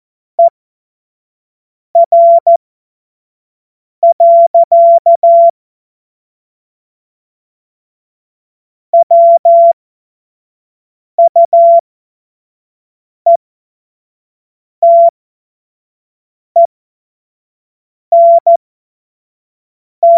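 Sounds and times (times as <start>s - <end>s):
CW Morse code beeps: 2.0s - 2.6s, 4.0s - 5.5s, 9.0s - 9.8s, 11.2s - 11.8s, 14.8s - 15.1s, 18.1s - 18.6s.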